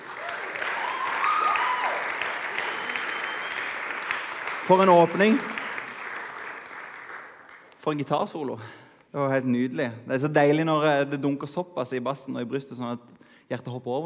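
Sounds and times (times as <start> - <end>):
crowd applause for worship band: 0.0 - 7.7
speech: 4.7 - 5.6, 7.9 - 14.0.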